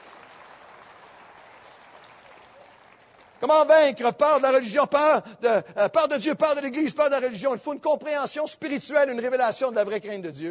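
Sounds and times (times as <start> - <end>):
crowd applause: 0.0 - 3.6
speech: 3.4 - 10.5.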